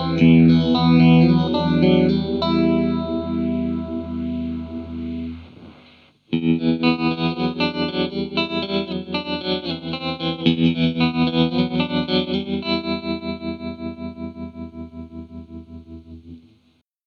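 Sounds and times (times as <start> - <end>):
modded Joyo DC15 effects pedal: 0.0 - 16.8.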